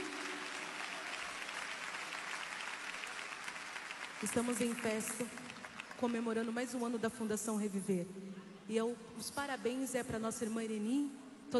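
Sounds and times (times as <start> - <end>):
audience applauding: 0.0 - 6.5
speech: 4.2 - 11.5.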